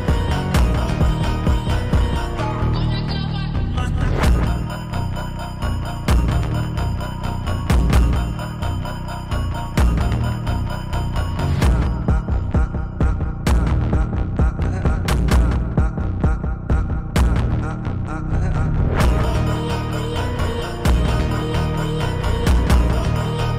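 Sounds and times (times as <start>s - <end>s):
drift phonk beat: 0.0s - 18.0s, 19.0s - 23.5s.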